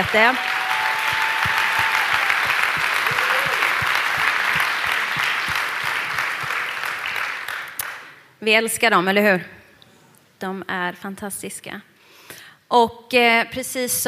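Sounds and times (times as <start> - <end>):
speech: 0.0 - 0.5, 8.4 - 9.6, 10.4 - 11.9, 12.7 - 14.0
audience applause: 0.0 - 8.2.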